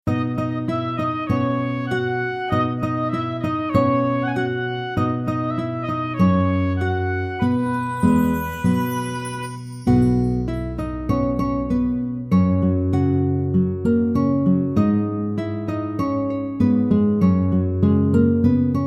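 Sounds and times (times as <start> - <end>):
instrumental music: 0.1 - 18.8.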